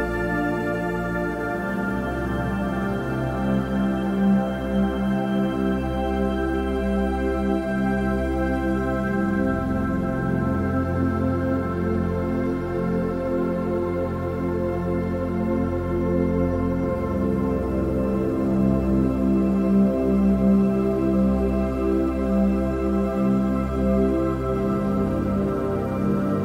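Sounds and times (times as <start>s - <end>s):
852 Hz spiritual awakening tone music: 0.0s - 26.4s.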